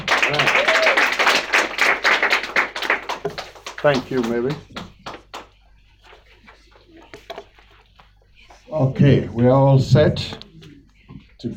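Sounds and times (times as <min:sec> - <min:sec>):
audience clapping to welcome a speaker: 0:00.0 - 0:06.2
speech: 0:03.8 - 0:04.7, 0:08.8 - 0:10.4, 0:11.4 - 0:11.5.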